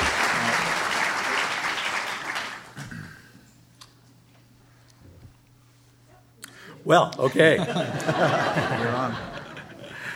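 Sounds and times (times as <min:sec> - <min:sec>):
audience applause: 0:00.0 - 0:02.8
speech: 0:06.8 - 0:09.4
laughter: 0:07.2 - 0:10.1.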